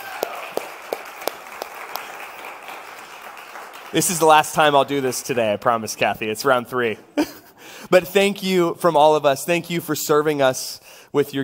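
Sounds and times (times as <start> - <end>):
audience applause: 0.0 - 5.4
speech: 3.9 - 7.3, 7.9 - 11.4.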